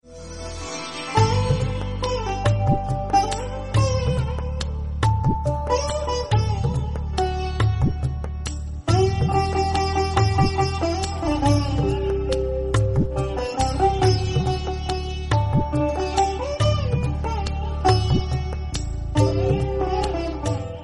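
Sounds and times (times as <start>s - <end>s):
sitar ringtone: 0.0s - 20.8s.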